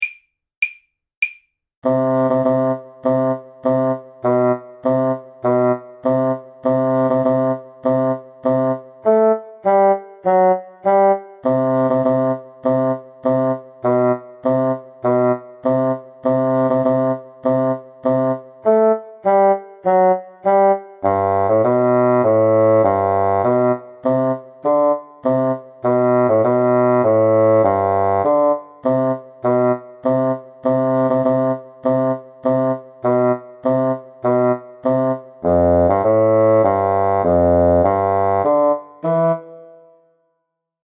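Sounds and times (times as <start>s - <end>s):
bassoon trio playing a soldiers' march: 1.8s - 39.5s.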